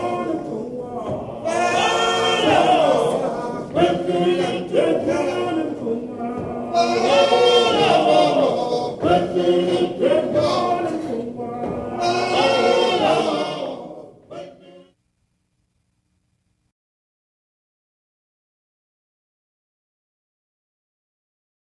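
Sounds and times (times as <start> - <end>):
mbube vocal choir singing: 0.0 - 15.0.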